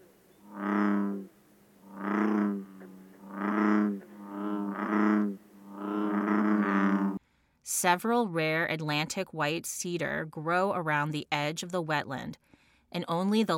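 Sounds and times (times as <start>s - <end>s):
bullfrogs calling: 0.0s - 7.2s
green frogs calling: 0.0s - 7.2s
speech: 7.7s - 13.5s.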